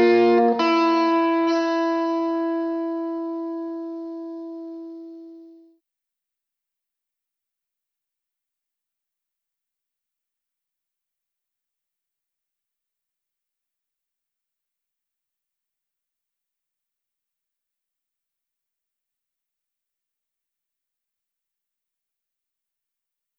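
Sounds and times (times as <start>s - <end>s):
guitar playing: 0.0s - 5.6s.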